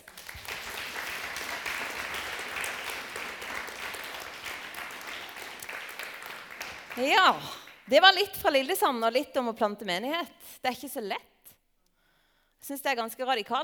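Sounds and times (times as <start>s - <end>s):
applause: 0.0s - 8.3s
speech: 7.0s - 11.3s, 12.6s - 13.6s.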